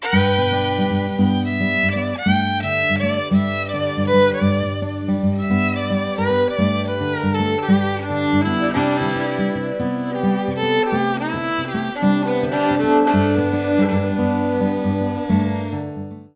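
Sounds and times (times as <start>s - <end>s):
acoustic music: 0.0s - 16.3s.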